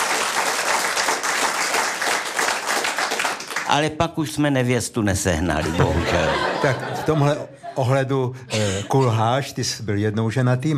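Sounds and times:
audience applause: 0.0s - 3.7s
speech: 3.7s - 10.7s
laughter: 5.5s - 9.4s.

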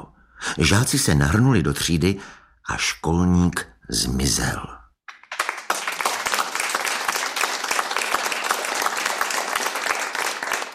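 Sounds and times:
speech: 0.5s - 4.8s
crowd applause: 5.1s - 10.7s.

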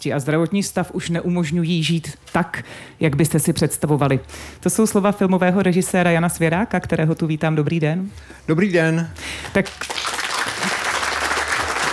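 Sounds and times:
speech: 0.0s - 10.2s
festival audience applause: 9.5s - 11.9s.

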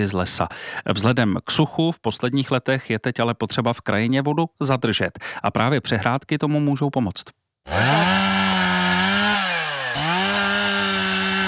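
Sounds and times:
speech: 0.0s - 8.4s
volunteers sawing pieces of wood: 7.7s - 11.4s.

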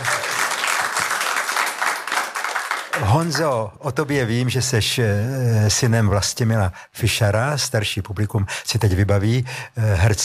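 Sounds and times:
talk show audience applauding: 0.0s - 3.8s
speech: 3.1s - 10.2s.

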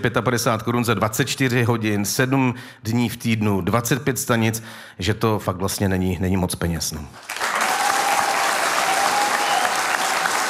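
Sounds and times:
speech: 0.0s - 7.5s
audience applause: 7.2s - 10.4s.

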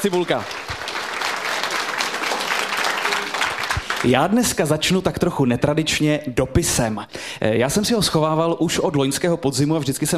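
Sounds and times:
speech: 0.0s - 0.7s, 4.0s - 10.1s
live theatre audience applauding: 0.0s - 4.7s.

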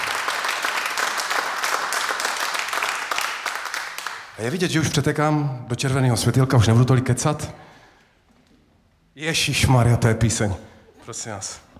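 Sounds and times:
applause: 0.0s - 4.4s
speech: 4.4s - 7.7s, 9.2s - 11.7s.

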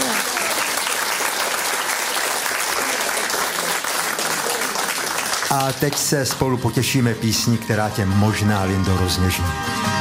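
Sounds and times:
applause: 0.0s - 7.6s
speech: 5.5s - 9.9s.

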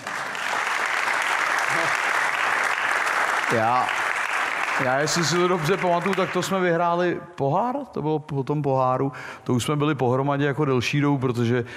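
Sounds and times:
audience applause: 0.0s - 6.7s
speech: 3.5s - 4.0s, 4.8s - 11.7s.

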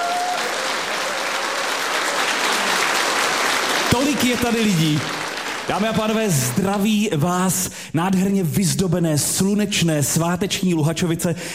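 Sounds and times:
audience applause in a hall: 0.0s - 7.0s
speech: 4.0s - 11.5s.

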